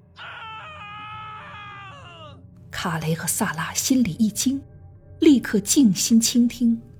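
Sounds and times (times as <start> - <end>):
man's muffled, shrill scream of pain: 0.2 - 2.4
speech: 2.8 - 6.9.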